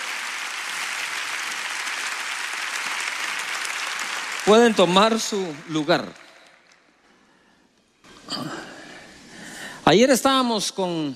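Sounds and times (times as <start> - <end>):
audience applause: 0.0 - 6.9
speech: 4.5 - 6.2, 9.9 - 11.1.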